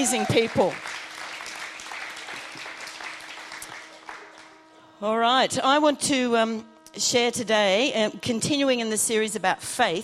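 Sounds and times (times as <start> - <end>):
speech: 0.0 - 0.9, 5.0 - 10.0
audience applause: 0.0 - 4.6.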